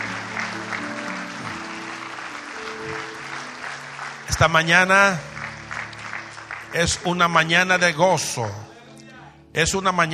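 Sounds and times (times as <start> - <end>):
audience applause: 0.0 - 7.5
speech: 4.4 - 5.3, 6.7 - 8.7, 9.6 - 10.1.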